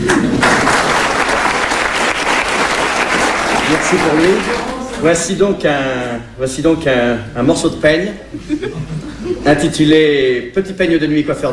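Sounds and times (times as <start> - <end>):
audience applause: 0.0 - 5.0
speech: 3.9 - 11.5
laughter: 8.3 - 9.5.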